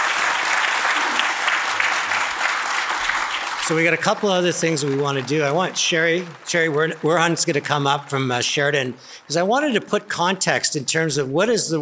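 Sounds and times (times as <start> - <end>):
audience applause: 0.0 - 10.4
speech: 3.7 - 11.8.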